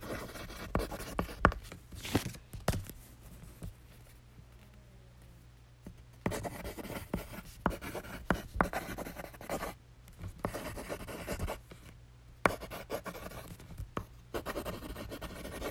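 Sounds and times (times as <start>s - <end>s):
pencil sounds: 0.0s - 1.8s, 6.2s - 11.7s, 12.5s - 15.6s.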